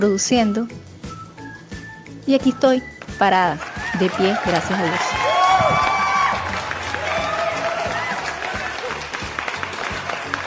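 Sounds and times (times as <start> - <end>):
speech: 0.0 - 0.8, 2.3 - 5.9
crowd of fans applauding: 3.5 - 10.4
whoops and shouts: 3.6 - 9.0.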